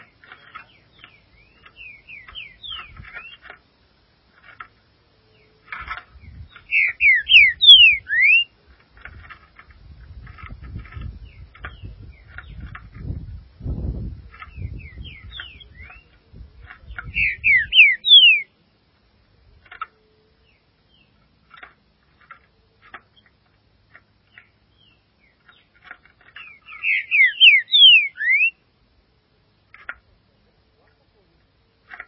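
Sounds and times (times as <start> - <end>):
green-winged saltator singing: 0.0 - 3.5, 6.2 - 8.5, 14.3 - 16.2, 16.8 - 18.5, 26.4 - 28.6.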